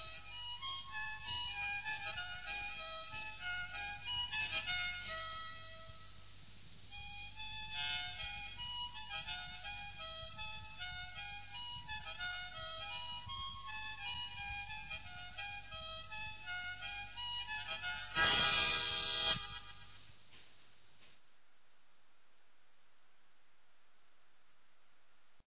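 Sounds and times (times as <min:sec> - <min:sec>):
harmonica solo: 0:00.0 - 0:20.0.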